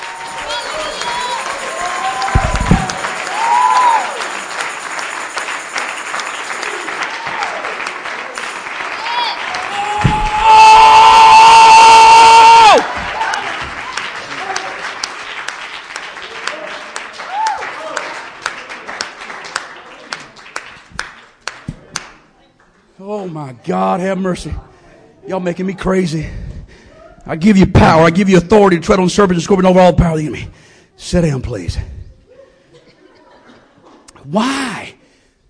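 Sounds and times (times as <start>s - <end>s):
applause and cheering: 0.0s - 22.1s
speech: 23.6s - 24.7s, 25.3s - 26.4s, 27.3s - 32.0s, 34.3s - 34.6s
laughter: 32.3s - 34.2s.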